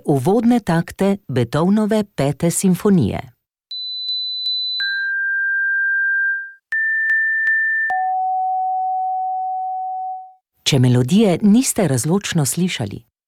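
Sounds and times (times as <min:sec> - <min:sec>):
speech: 0:00.1 - 0:03.3, 0:10.7 - 0:13.1
hearing test sine tones 500 to 4000 Hz: 0:03.7 - 0:10.4.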